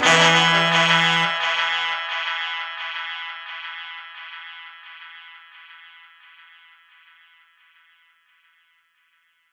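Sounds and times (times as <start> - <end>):
horn note E: 0.0 - 2.5.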